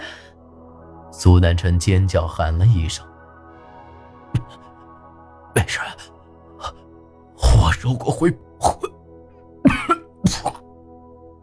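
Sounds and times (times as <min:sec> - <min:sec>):
speech: 0:01.2 - 0:03.1, 0:07.8 - 0:08.8
person coughing up blood with retching: 0:04.3 - 0:04.6, 0:08.6 - 0:09.0, 0:09.6 - 0:10.7.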